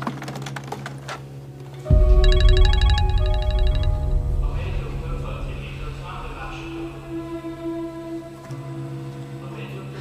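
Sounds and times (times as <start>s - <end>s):
telephone ringing with an electronic trill: 1.9s - 4.2s
low rumble: 1.9s - 8.8s
people talking: 4.4s - 7.4s.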